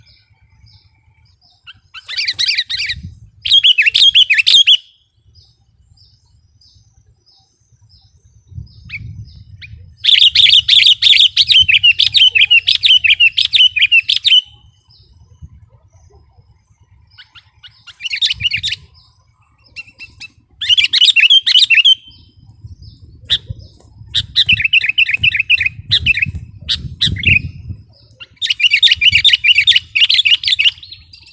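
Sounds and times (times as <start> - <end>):
sooty-headed bulbul song: 0.0 - 31.3.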